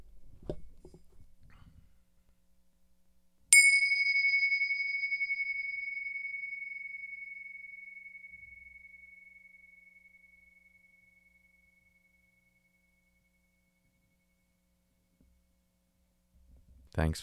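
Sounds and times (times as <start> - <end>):
meditation bell ringing: 3.5 - 14.8.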